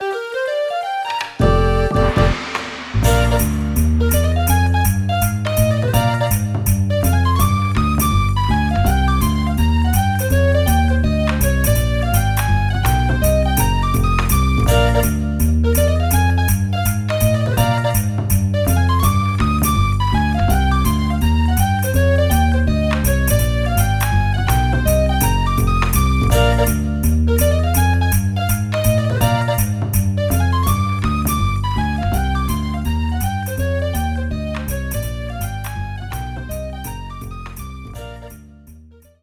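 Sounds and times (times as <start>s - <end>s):
background music for a win result: 0.0s - 39.2s.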